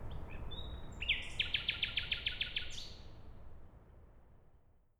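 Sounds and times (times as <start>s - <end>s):
common nightingale song: 0.1s - 3.1s.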